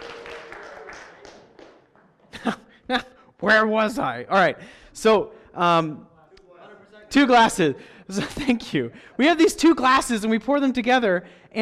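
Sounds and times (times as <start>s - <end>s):
audience applause: 0.0s - 2.3s
speech: 2.4s - 6.1s, 7.1s - 11.6s.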